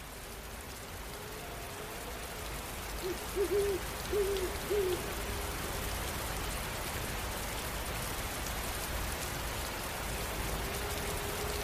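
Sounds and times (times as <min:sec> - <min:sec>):
steady rain: 0:00.0 - 0:11.6
owl hooting: 0:03.0 - 0:05.0.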